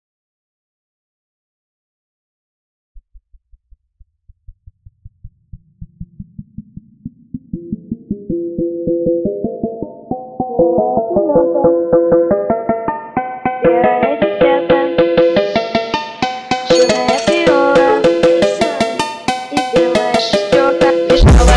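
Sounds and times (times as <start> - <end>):
phonk remix: 9.2 - 21.5.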